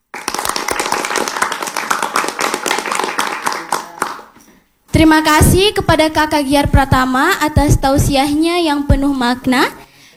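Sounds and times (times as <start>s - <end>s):
audience applause after an Islamic sermon: 0.0s - 4.5s
speech: 5.0s - 9.8s.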